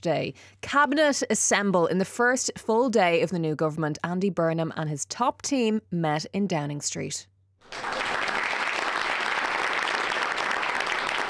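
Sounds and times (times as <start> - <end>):
speech: 0.0 - 8.0
applause for new prime minister: 7.6 - 11.2.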